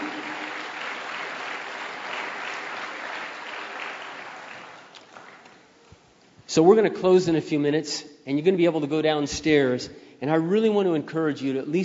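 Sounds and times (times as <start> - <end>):
crowd clapping steadily: 0.0 - 5.6
speech: 6.6 - 11.8.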